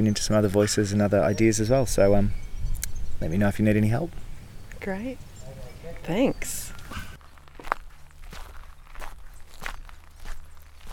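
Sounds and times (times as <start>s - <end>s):
speech: 0.0s - 2.4s, 3.2s - 4.2s, 4.8s - 5.3s, 6.0s - 7.0s
footsteps walking up a path at a festival art project: 6.0s - 10.9s.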